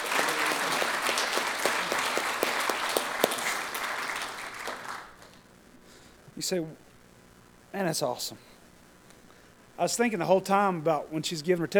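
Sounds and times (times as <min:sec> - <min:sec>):
audience applause: 0:00.0 - 0:05.4
speech: 0:06.4 - 0:06.8, 0:07.7 - 0:08.5, 0:09.8 - 0:11.7.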